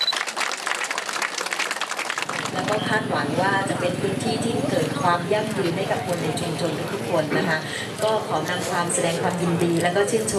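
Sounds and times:
applause: 0:00.0 - 0:03.0
speech: 0:02.6 - 0:10.3.

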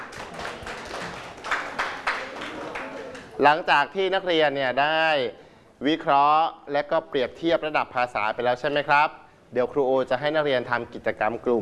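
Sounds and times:
classroom applause: 0:00.0 - 0:03.4
speech: 0:03.4 - 0:11.5.

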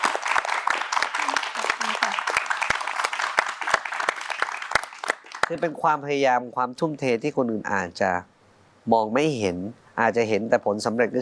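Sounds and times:
audience applause: 0:00.0 - 0:05.6
speech: 0:05.5 - 0:11.2.

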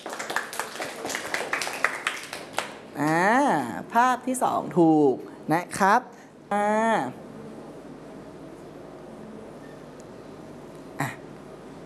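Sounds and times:
applause: 0:00.0 - 0:03.2
speech: 0:03.0 - 0:07.2.

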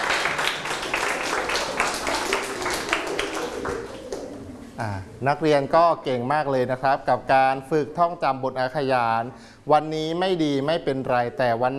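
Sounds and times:
class applauding: 0:00.0 - 0:04.8
speech: 0:04.8 - 0:11.7.

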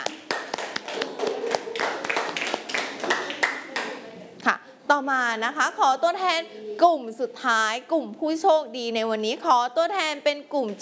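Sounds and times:
class clapping hands: 0:00.0 - 0:04.0
speech: 0:04.4 - 0:10.7.

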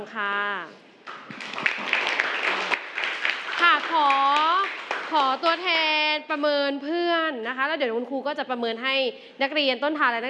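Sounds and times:
speech: 0:00.0 - 0:02.0, 0:03.6 - 0:04.4, 0:05.1 - 0:10.2
group of students applauding in a classroom: 0:01.0 - 0:05.8.

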